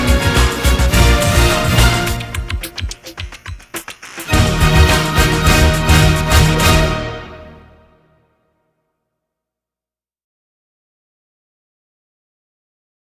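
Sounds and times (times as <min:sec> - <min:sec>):
orchestral music without choir: 0:00.0 - 0:03.3, 0:04.1 - 0:08.0.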